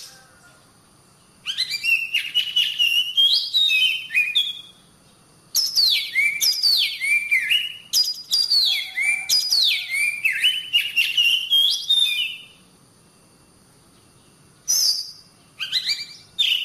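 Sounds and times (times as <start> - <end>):
Oriental magpie-robin singing whistled and scratchy notes: 1.4 - 4.8, 5.6 - 12.6, 14.7 - 16.6.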